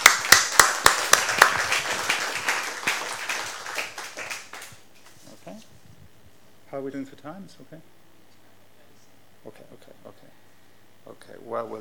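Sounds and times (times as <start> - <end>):
audience applause: 0.0 - 4.8
speech: 6.8 - 8.0, 9.4 - 10.5, 11.1 - 11.7.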